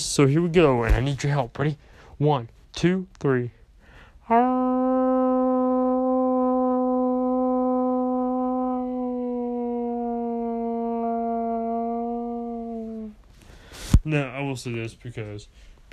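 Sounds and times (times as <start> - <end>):
speech: 0.2 - 3.6, 4.3 - 4.7, 14.0 - 15.9
person howling like a wolf: 4.6 - 13.2.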